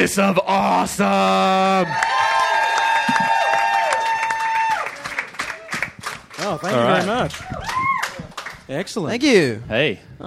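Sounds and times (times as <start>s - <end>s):
speech: 0.0s - 2.2s, 6.4s - 8.0s, 8.7s - 10.2s
audience applause: 1.8s - 8.7s.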